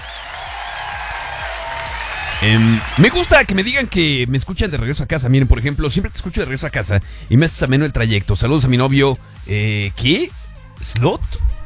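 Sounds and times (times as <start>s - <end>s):
applause sound effect: 0.0s - 4.1s
speech: 2.4s - 11.5s.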